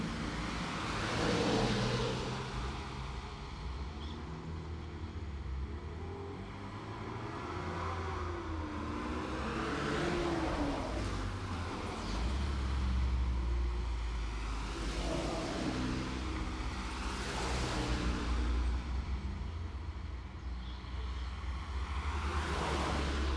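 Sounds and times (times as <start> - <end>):
street traffic in a city: 0.0 - 23.3.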